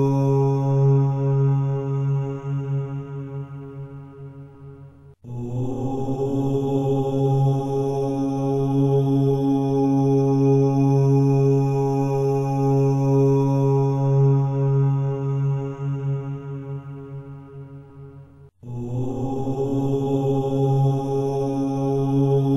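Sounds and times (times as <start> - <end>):
mantra chanting: 0.0 - 4.6, 5.2 - 18.0, 18.6 - 22.5.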